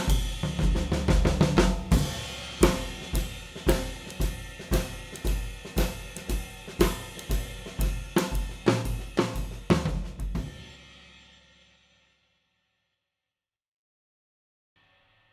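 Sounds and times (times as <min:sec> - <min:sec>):
black Gretsch drum kit: 0:00.0 - 0:11.4.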